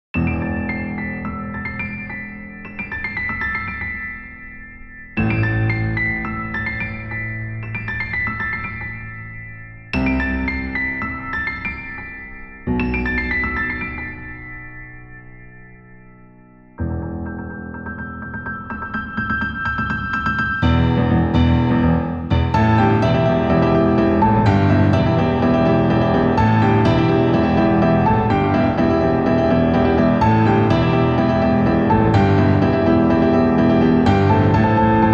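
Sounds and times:
piano cover: 0:00.1 - 0:35.1.

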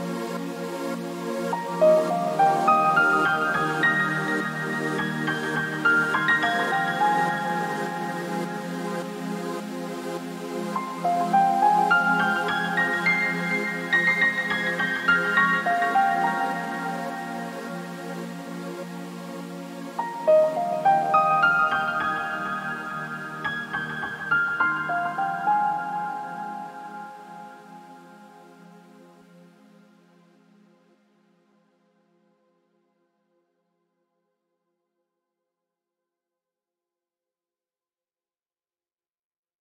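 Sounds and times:
piano: 0:00.0 - 0:30.4.

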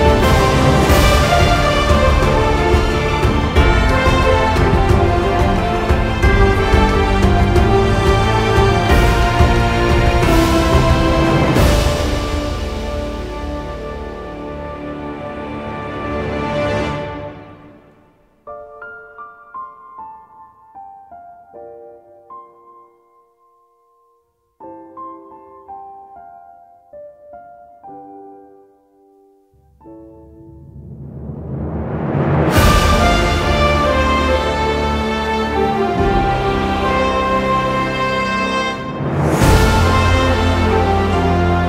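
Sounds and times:
epic orchestral music: 0:00.0 - 0:18.4, 0:30.2 - 0:41.6.

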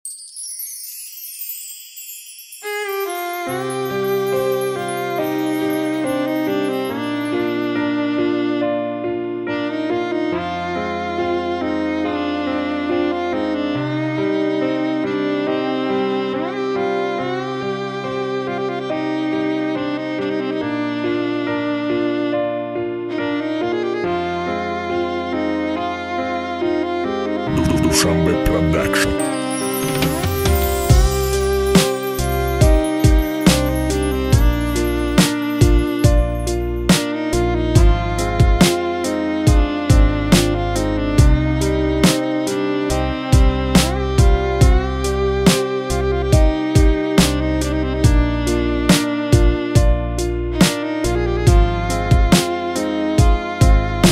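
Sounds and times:
sad instrumental beat: 0:02.6 - 0:54.0.

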